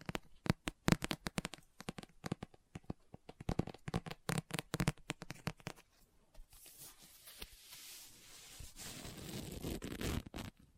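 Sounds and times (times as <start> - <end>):
book tapping: 0.0 - 5.8
page turning: 6.5 - 10.0.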